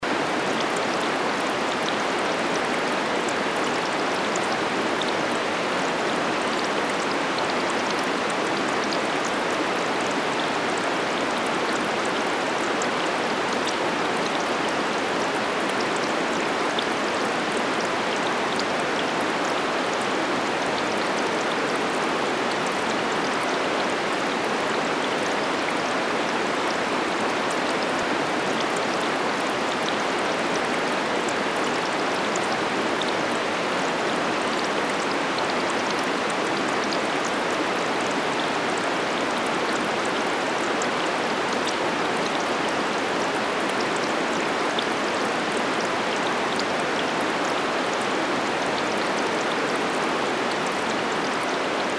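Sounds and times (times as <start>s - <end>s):
river: 0.0s - 51.9s.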